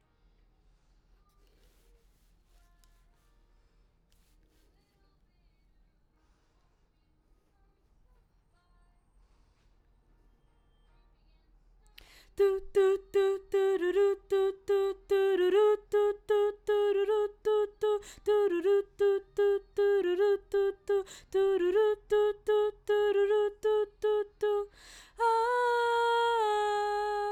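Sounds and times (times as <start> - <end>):
background vocals: 12.0 - 27.3.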